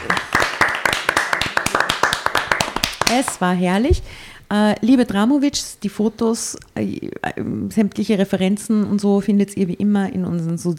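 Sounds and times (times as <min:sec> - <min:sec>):
small group applause: 0:00.0 - 0:03.4
speech: 0:03.1 - 0:10.7.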